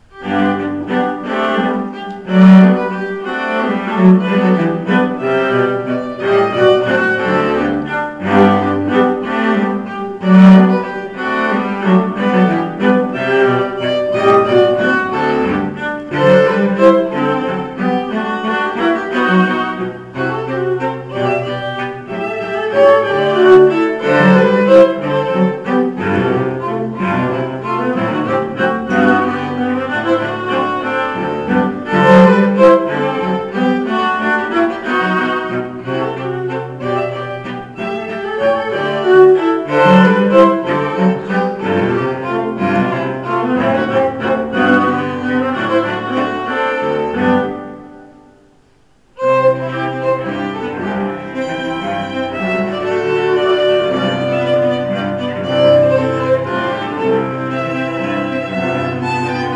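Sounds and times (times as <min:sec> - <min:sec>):
string trio playing a minuet and trio: 0:00.0 - 0:59.5.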